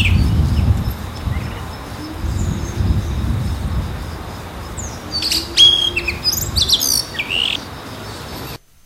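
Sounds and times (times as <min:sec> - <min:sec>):
brown-eared bulbul calling: 0:00.0 - 0:08.6.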